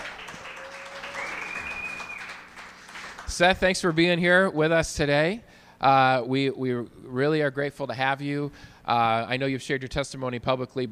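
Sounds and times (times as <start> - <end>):
audience applause welcoming a guest speaker: 0.0 - 3.5
speech: 3.3 - 10.9.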